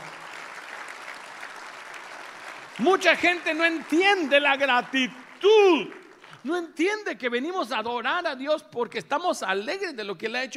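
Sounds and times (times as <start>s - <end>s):
audience applause: 0.0s - 6.6s
speech: 2.8s - 10.5s.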